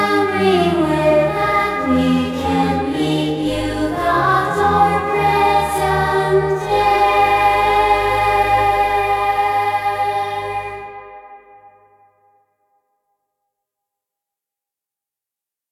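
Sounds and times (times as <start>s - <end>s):
choir singing: 0.0s - 12.0s.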